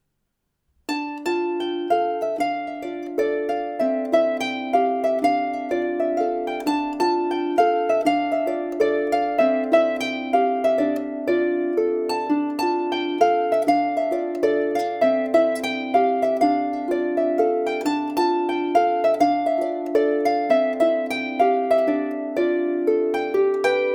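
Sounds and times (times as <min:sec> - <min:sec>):
polska folk tune: 0:00.9 - 0:23.9.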